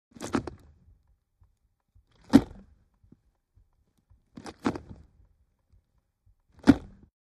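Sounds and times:
Mitsubishi Montero interior gear shift movement: 0:00.2 - 0:01.1, 0:02.0 - 0:05.9.

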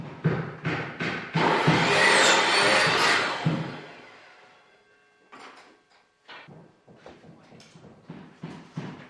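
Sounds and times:
distant hammering by carpenters building a house: 0:00.4 - 0:04.6
circular saw: 0:01.4 - 0:05.2.

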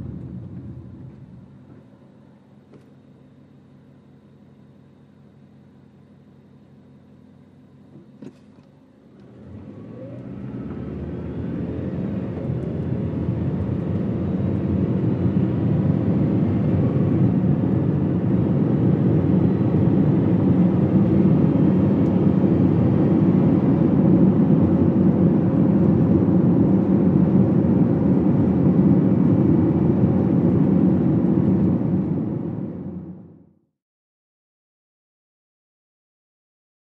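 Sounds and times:
small compact car engine accelerating to 55 mph: 0:08.2 - 0:33.3.

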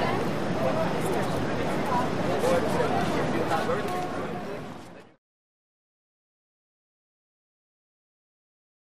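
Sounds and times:
busy distant traffic roar: 0:00.0 - 0:05.1
pedestrian walla passing by: 0:00.0 - 0:05.2.

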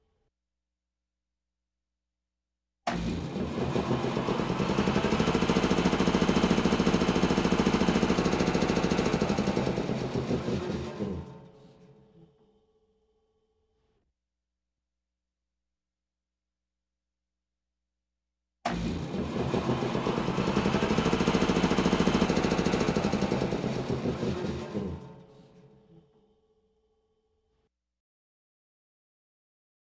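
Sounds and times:
noisy air compressor: 0:02.9 - 0:11.4, 0:18.7 - 0:25.4.

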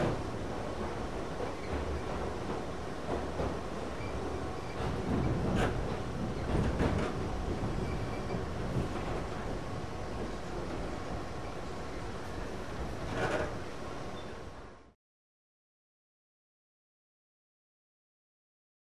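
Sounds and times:
modern subway train interior: 0:00.0 - 0:15.0.

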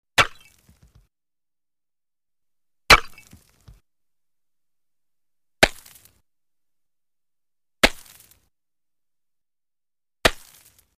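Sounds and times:
axe or pick chopping ice on a lake shore: 0:00.2 - 0:01.0, 0:02.9 - 0:03.8, 0:05.6 - 0:06.1, 0:07.8 - 0:08.4, 0:10.2 - 0:10.8.

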